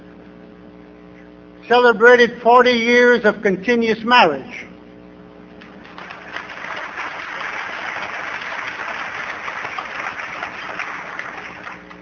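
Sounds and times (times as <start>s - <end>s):
speech: 1.7s - 4.7s
crowd applauding: 5.6s - 12.0s.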